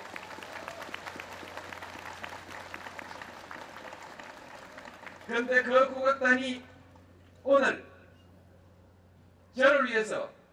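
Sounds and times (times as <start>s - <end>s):
audience applause: 0.0s - 5.7s
low steady hum: 0.9s - 10.5s
speech: 5.3s - 6.7s, 7.4s - 7.8s, 9.6s - 10.4s.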